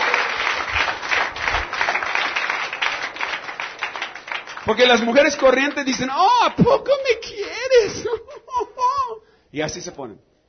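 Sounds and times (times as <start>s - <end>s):
audience applause: 0.0s - 6.0s
speech: 4.7s - 8.7s, 9.5s - 10.3s.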